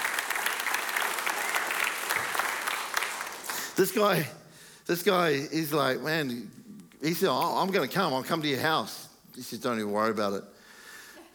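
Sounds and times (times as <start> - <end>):
audience clapping: 0.0 - 4.3
speech: 3.8 - 10.5.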